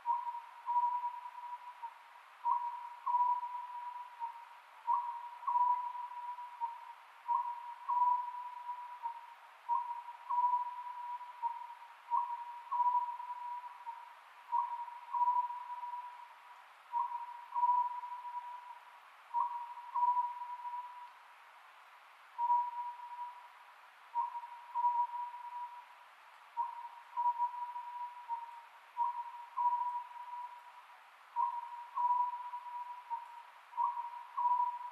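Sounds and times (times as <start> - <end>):
Oriental scops owl hooting: 0.0 - 16.3, 16.9 - 21.1, 22.4 - 23.4, 24.2 - 25.9, 26.6 - 30.7, 31.4 - 34.8
hiss: 0.0 - 34.8.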